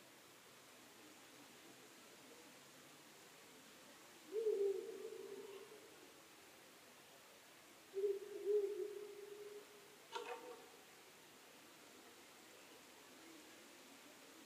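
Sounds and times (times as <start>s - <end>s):
faint background hiss: 0.0s - 14.4s
owl hooting: 4.3s - 6.0s, 7.9s - 10.4s.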